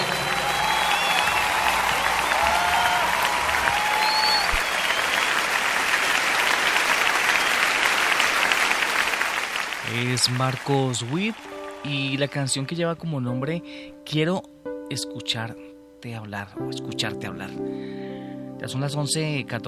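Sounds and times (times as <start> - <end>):
audience applause: 0.0 - 12.2
speech: 10.2 - 17.8, 18.6 - 19.6.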